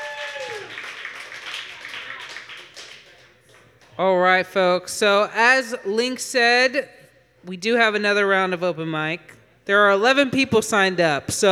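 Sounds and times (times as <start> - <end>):
audience applause: 0.0 - 3.8
speech: 4.0 - 11.5.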